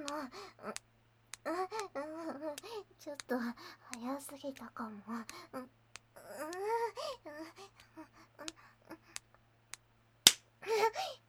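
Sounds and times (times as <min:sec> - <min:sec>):
breathy wavering vocal sounds: 0:00.0 - 0:00.8, 0:01.4 - 0:09.3, 0:10.6 - 0:11.2
speech: 0:03.0 - 0:05.8
slap on the buttocks: 0:10.3 - 0:10.5.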